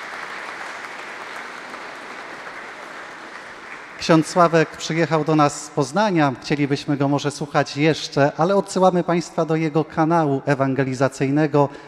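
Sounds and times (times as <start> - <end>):
audience applause: 0.0 - 5.5
speech: 4.0 - 11.8.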